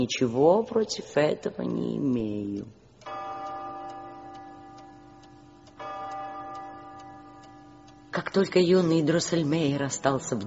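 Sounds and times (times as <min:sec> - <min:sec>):
speech: 0:00.0 - 0:02.8, 0:08.3 - 0:10.4
several clocks ticking: 0:00.0 - 0:10.4
sustained ringing hum: 0:00.0 - 0:10.4.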